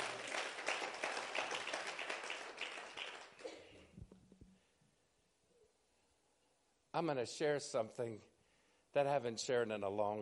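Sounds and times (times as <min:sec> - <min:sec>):
audience applause: 0:00.0 - 0:03.5
speech: 0:07.0 - 0:08.3, 0:08.9 - 0:10.2.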